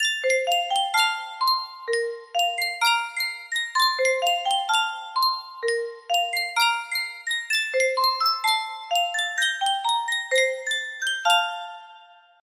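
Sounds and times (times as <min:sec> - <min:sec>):
Sankyo miniature music box melody: 0:00.0 - 0:12.4.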